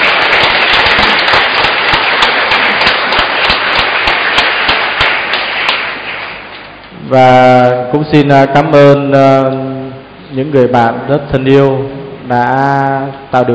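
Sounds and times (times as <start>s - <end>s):
audience applause: 0.0s - 6.6s
speech: 7.1s - 13.5s.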